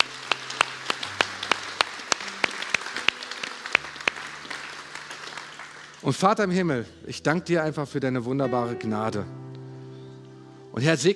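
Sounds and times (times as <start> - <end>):
audience applause: 0.0 - 6.5
speech: 6.0 - 9.4, 10.8 - 11.1.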